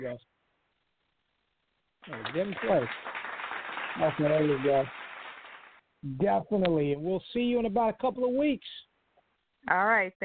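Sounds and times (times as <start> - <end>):
speech: 0.0 - 0.3, 2.0 - 3.2, 4.0 - 5.0, 6.0 - 8.9, 9.6 - 10.2
crowd applause sound effect: 2.0 - 5.8
voices calling out or cheering: 2.1 - 3.0.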